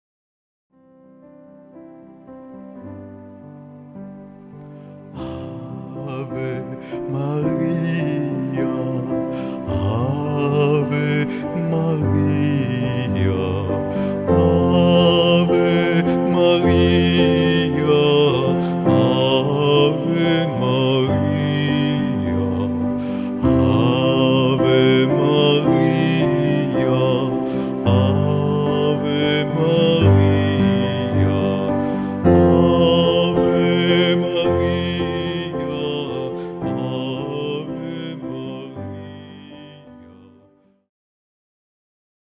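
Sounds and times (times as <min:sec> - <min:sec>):
chant: 0:05.2 - 0:40.6.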